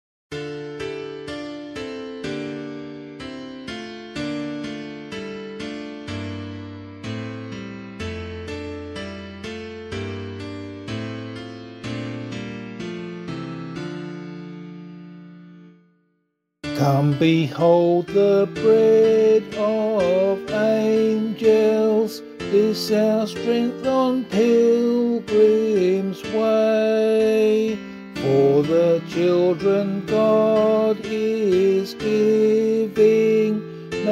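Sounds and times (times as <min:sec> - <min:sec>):
person singing a hymn: 0:16.7 - 0:34.1.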